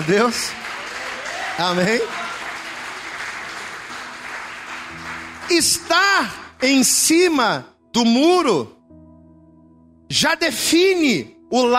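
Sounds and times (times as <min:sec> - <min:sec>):
speech: 0:00.0 - 0:00.6, 0:01.6 - 0:02.2, 0:05.5 - 0:08.8, 0:10.1 - 0:11.7
audience applause: 0:00.0 - 0:06.5.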